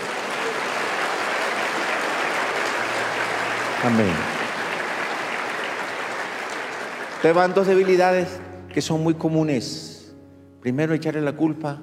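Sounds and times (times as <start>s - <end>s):
audience applause: 0.0s - 8.5s
speech: 3.8s - 4.3s, 7.2s - 9.9s, 10.6s - 11.8s.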